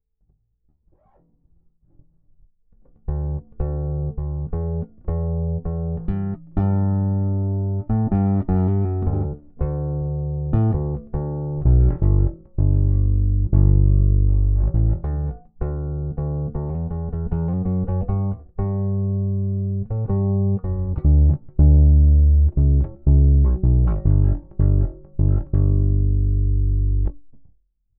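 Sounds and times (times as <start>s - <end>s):
bass with chorus effect: 0.9s - 27.5s.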